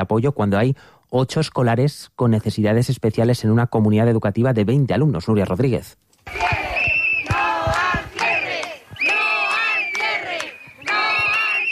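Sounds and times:
speech: 0.0s - 6.6s
crowd of protesters chanting and shouting: 6.3s - 11.7s.

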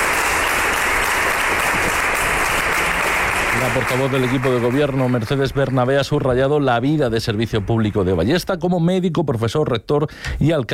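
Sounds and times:
applause from council members: 0.0s - 8.4s
speech: 3.6s - 10.7s.

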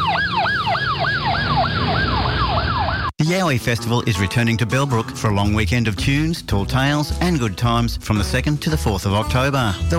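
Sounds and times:
police car siren yelping: 0.0s - 3.2s
speech: 3.3s - 9.9s.

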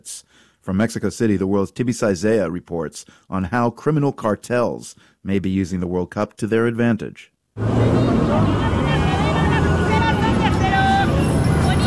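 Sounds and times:
speech: 0.0s - 9.2s
busy city street traffic rumble: 7.6s - 11.8s
crowd chatter on busy city street: 7.6s - 11.8s
scattered calls from many voices: 7.6s - 11.8s.

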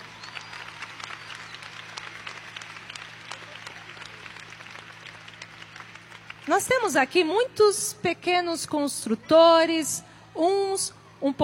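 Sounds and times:
audience applauding: 0.0s - 7.3s
speech: 6.5s - 11.4s.

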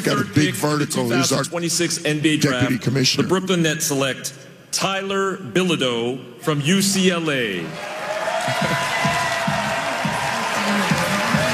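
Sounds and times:
speech: 0.1s - 7.9s, 8.5s - 9.1s
crowd cheering for draft pick: 7.5s - 11.5s
people clapping: 7.6s - 11.5s.

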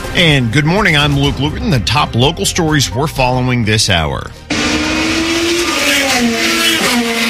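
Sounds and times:
speech: 0.2s - 4.4s
IndyCar race car engines screaming at the Freedom 250 Grand Prix in Washington, D.C.: 4.4s - 7.2s.

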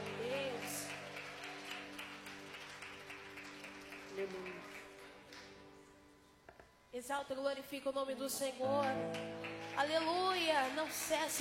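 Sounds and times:
audience clapping: 0.0s - 5.7s, 8.6s - 11.4s
speech: 4.2s - 4.8s, 6.9s - 11.4s.

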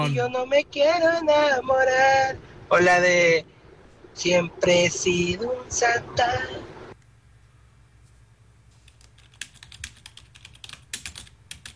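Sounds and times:
speech: 0.0s - 3.6s, 4.2s - 6.7s
typing on a computer keyboard: 8.8s - 11.7s.

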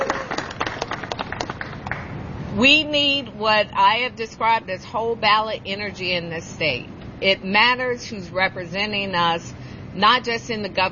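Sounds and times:
audience clapping at a political rally: 0.0s - 2.2s
speech: 2.6s - 10.8s.

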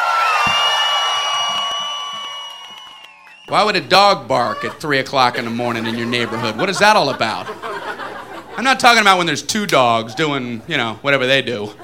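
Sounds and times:
crowd cheering and whooping: 0.0s - 3.5s
speech: 3.5s - 7.7s, 8.6s - 11.8s
laughter: 4.0s - 9.0s.

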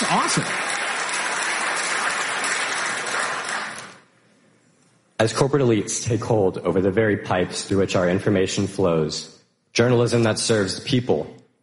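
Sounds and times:
crowd applause: 0.0s - 4.0s
speech: 0.1s - 0.6s, 5.2s - 11.4s.

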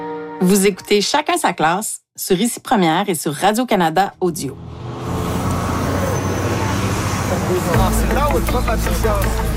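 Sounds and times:
speech: 0.4s - 4.8s, 7.5s - 9.5s
city bus engine rumbling: 4.1s - 9.5s
busy street traffic: 4.3s - 9.5s
crowd chattering: 6.2s - 9.5s.

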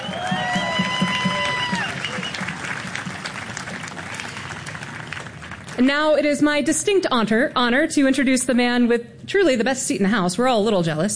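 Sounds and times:
whistled tones: 0.0s - 2.6s
cheering voices: 0.0s - 3.9s
audience applause: 0.0s - 5.8s
speech: 5.8s - 11.1s.

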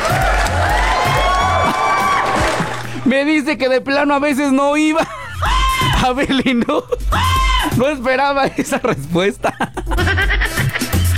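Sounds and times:
crowd cheering and clapping: 0.0s - 3.1s
speech: 3.2s - 10.1s
laughter: 4.9s - 11.1s.

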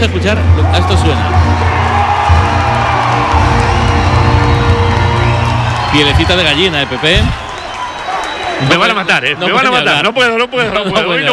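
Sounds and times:
speech: 0.0s - 1.8s, 5.9s - 7.5s, 8.6s - 11.3s
large crowd cheering and singing the anthem: 0.0s - 10.9s.

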